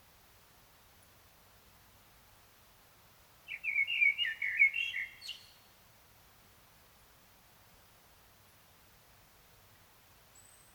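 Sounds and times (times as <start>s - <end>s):
common blackbird singing: 3.5s - 5.6s.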